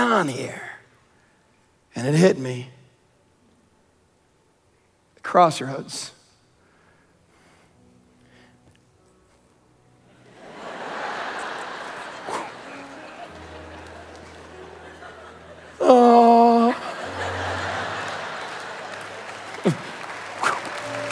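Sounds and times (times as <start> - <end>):
speech: 0.0 - 0.7, 1.9 - 2.8, 5.2 - 6.2
laughter: 10.4 - 15.8, 16.5 - 19.0
audience clapping: 10.4 - 21.1.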